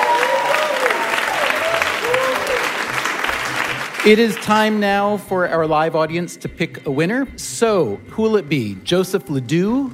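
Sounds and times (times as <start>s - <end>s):
live audience applause at the close of a stage show: 0.0s - 4.8s
speech: 4.0s - 9.9s.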